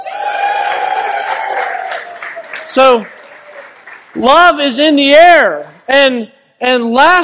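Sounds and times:
audience cheering: 0:00.0 - 0:04.7
speech: 0:02.7 - 0:03.2, 0:04.2 - 0:07.2.

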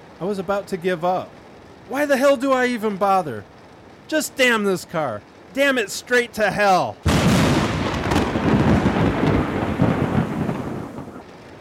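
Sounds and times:
speech: 0:00.2 - 0:03.5, 0:04.1 - 0:07.1
lightning strike thunderclap: 0:07.0 - 0:11.3.

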